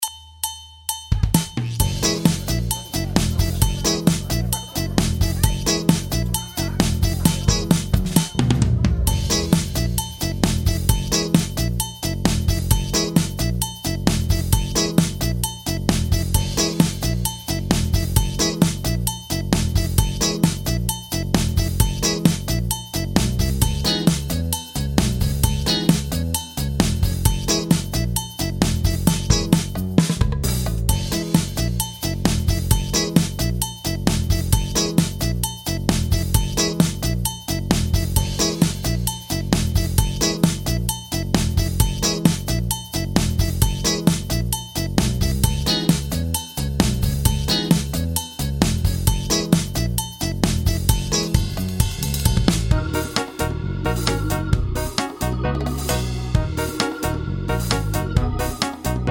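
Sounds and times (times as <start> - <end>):
backing music: 1.1 - 59.1
laughter: 2.0 - 9.0.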